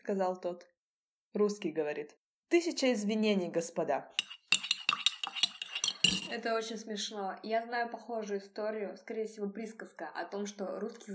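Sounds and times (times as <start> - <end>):
speech: 0.0 - 4.8, 6.3 - 11.1
teaspoon clinking against a glass: 4.2 - 6.4.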